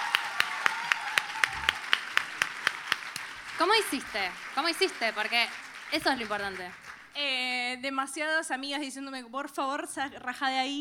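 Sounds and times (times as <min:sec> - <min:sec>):
audience applause: 0:00.0 - 0:07.2
speech: 0:03.6 - 0:10.7.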